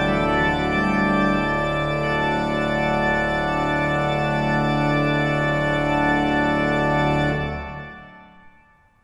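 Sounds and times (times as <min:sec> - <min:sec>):
pipe organ playing on a Fleiter 19 II P stop: 0:00.0 - 0:08.5.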